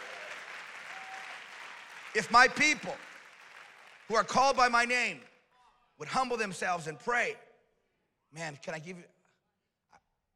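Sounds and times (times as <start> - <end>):
audience clapping: 0.0 - 5.4
speech: 2.1 - 3.1, 4.1 - 5.3, 6.0 - 7.4, 8.3 - 9.2.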